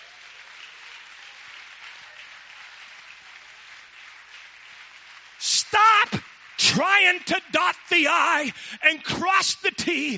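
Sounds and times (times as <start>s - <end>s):
people clapping: 0.0s - 10.1s
speech: 6.7s - 10.1s.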